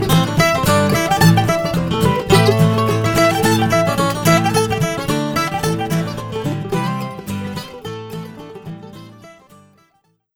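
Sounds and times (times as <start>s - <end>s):
celtic-bluegrass acoustic music: 0.0s - 9.8s.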